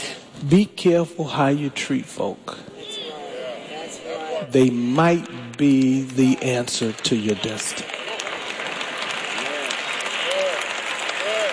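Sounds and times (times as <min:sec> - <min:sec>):
speech: 0:00.4 - 0:02.7, 0:04.4 - 0:07.9
audience clapping: 0:04.6 - 0:11.5
vocal whoops: 0:10.2 - 0:11.5.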